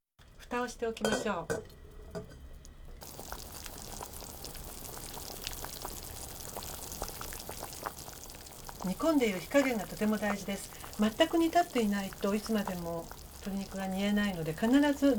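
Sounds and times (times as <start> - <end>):
soft crackling simmer: 0.2 - 15.1
metal lid clanking onto a cooking pot: 1.0 - 2.4.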